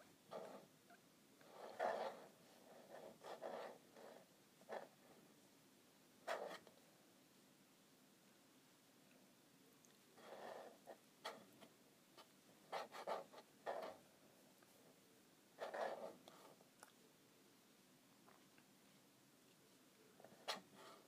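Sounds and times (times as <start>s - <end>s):
faint steady hiss: 0.0s - 21.0s
scratching on a calculator: 0.3s - 0.7s, 1.4s - 5.3s, 6.3s - 6.8s, 10.2s - 14.1s, 15.6s - 16.7s, 20.2s - 21.0s.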